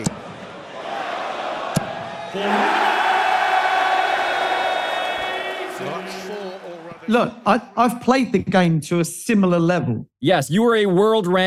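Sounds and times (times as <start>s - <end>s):
crowd cheering a maximum: 0.0s - 7.4s
speech: 2.3s - 2.8s, 7.1s - 11.4s.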